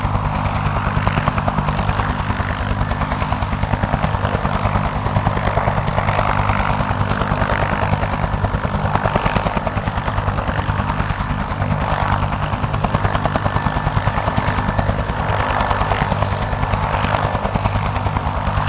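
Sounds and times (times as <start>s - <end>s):
1967 Bell UH-1 Iroquois helicopter hovering: 0.0s - 18.6s.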